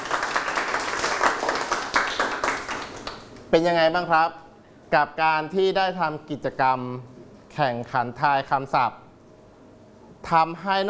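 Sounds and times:
room full of people clapping: 0.0 - 3.5
speech: 3.5 - 9.0, 10.2 - 10.8.

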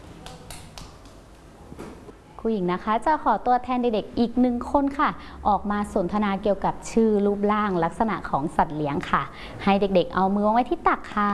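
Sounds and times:
children clapping hands in a classroom: 0.0 - 1.4
speech: 2.4 - 11.3.

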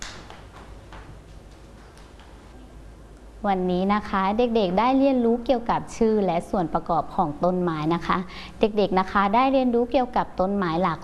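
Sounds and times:
children clapping hands: 0.0 - 2.5
speech: 3.4 - 11.0.

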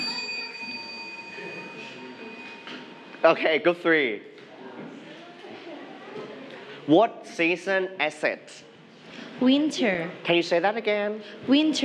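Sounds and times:
bell ringing: 0.0 - 3.5
speech: 3.2 - 4.3, 6.9 - 8.7, 9.4 - 11.8.

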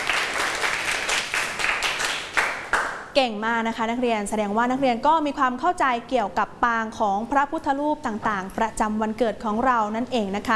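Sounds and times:
students clapping for themselves: 0.0 - 3.2
speech: 3.2 - 10.5.

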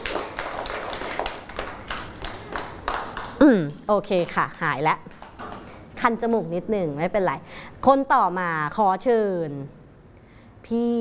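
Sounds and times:
audience clapping: 0.0 - 3.4
speech: 3.5 - 5.1, 6.0 - 9.8, 10.7 - 10.9.

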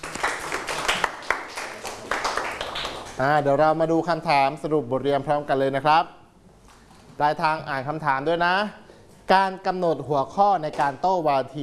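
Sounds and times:
classroom clapping: 0.0 - 3.3
speech: 3.2 - 6.2, 7.2 - 11.6.

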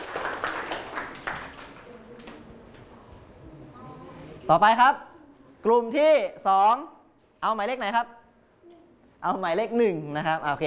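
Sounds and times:
classroom students clapping for a classmate: 0.0 - 2.4
speech: 4.5 - 8.2, 9.2 - 10.6.

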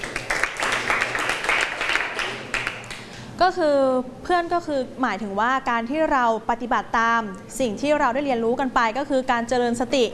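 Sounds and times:
class applause: 0.0 - 3.1
speech: 3.4 - 10.1.

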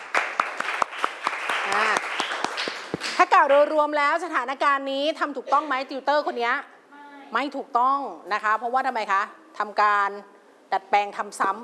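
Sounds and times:
classroom applause: 0.0 - 3.2
speech: 1.7 - 2.2, 3.4 - 6.7, 7.3 - 11.6.

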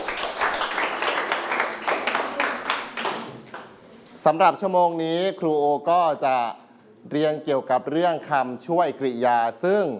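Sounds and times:
classroom applause, students clapping: 0.0 - 3.8
speech: 4.2 - 9.9.

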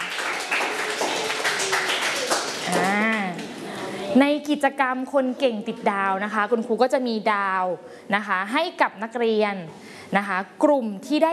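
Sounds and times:
group of children clapping hands: 0.0 - 3.6
speech: 2.7 - 3.0, 4.1 - 11.3.

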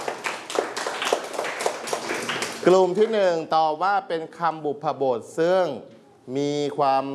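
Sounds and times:
classroom students clapping for themselves: 0.0 - 2.8
speech: 2.6 - 7.1.

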